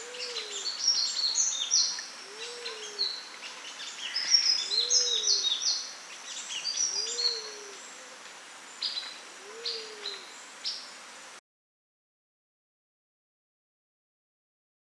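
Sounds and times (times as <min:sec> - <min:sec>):
sunbird calling: 0:00.0 - 0:11.0.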